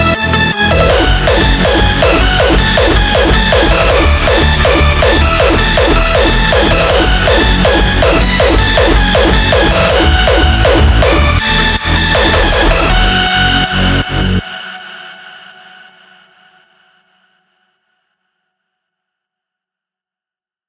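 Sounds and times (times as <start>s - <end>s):
hardstyle music: 0.0s - 14.7s.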